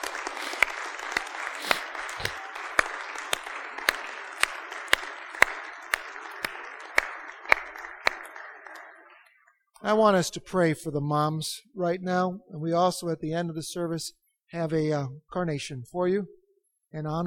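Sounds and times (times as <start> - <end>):
audience applauding: 0.0 - 9.4
speech: 9.9 - 17.2.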